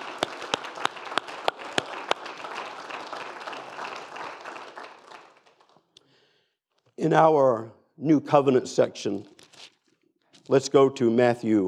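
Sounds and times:
audience clapping hands: 0.0 - 6.0
speech: 7.0 - 9.3, 10.5 - 11.6.

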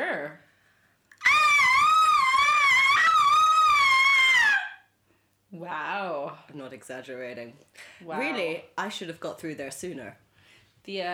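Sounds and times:
person letting out a loud wailing scream: 1.2 - 4.8
speech: 6.6 - 10.2, 10.8 - 11.1.

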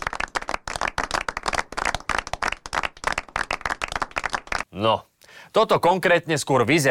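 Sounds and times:
people clapping for doctors: 0.0 - 4.7
speech: 4.7 - 6.8.

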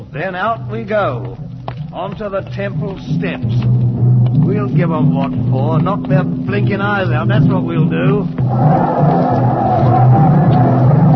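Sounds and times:
speech: 0.1 - 3.7, 4.4 - 10.7
crowd yelling: 8.5 - 11.1.

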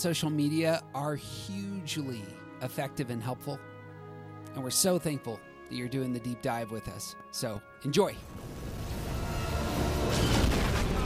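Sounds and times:
speech: 0.0 - 3.7, 4.5 - 8.5
heavy anti-aircraft flak explosions: 8.2 - 11.0.

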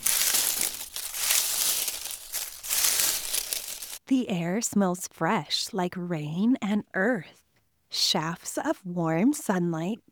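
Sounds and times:
bamboo leaves rustling in the wind: 0.0 - 4.0
speech: 4.1 - 10.0.

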